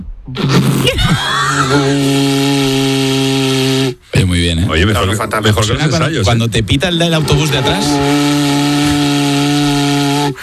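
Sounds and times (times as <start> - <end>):
speech: 0.3 - 2.5, 4.7 - 8.3
cow horn trumpet blown: 1.5 - 4.0, 7.2 - 10.4.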